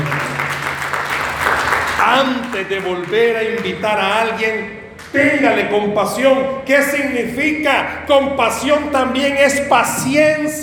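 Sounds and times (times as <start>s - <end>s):
audience applause: 0.0s - 5.4s
speech: 2.1s - 10.6s.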